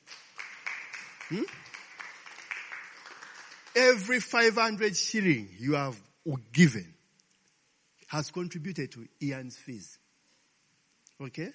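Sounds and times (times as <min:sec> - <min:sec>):
crowd clapping: 0:00.0 - 0:04.7
person whooping: 0:01.3 - 0:01.6
speech: 0:01.3 - 0:01.7, 0:03.8 - 0:07.0, 0:08.1 - 0:10.0, 0:11.2 - 0:11.5.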